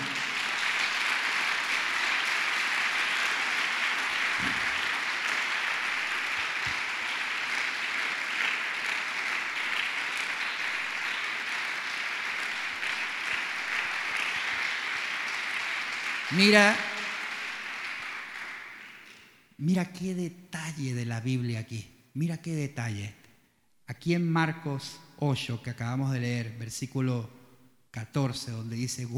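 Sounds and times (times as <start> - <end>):
audience applauding: 0.0 - 19.3
speech: 16.3 - 16.9, 19.6 - 23.2, 23.9 - 29.1.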